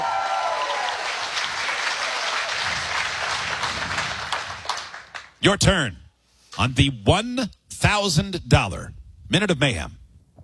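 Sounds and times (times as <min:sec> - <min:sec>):
crowd applauding and cheering: 0:00.0 - 0:05.4
speech: 0:05.4 - 0:06.0, 0:06.6 - 0:10.0.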